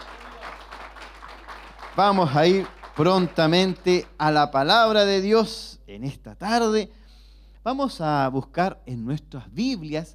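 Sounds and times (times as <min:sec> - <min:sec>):
audience applauding: 0:00.0 - 0:04.4
speech: 0:02.0 - 0:07.0, 0:07.6 - 0:10.1.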